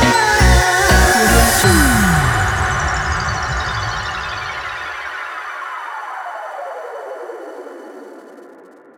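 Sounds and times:
funky happy music: 0.0s - 3.0s.

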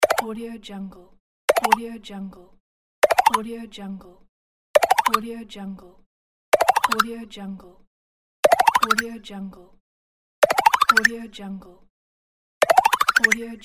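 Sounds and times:
rising power-up sound: 1.5s - 1.8s, 3.1s - 3.4s, 4.8s - 5.2s, 6.6s - 7.0s, 8.5s - 9.0s, 10.4s - 11.1s, 12.6s - 13.4s.

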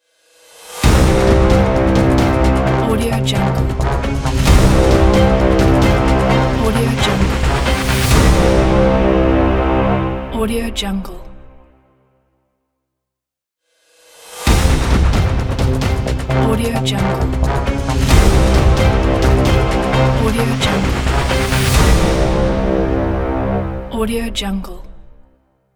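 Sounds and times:
trailer intro logo music: 0.7s - 11.8s, 14.3s - 24.3s.

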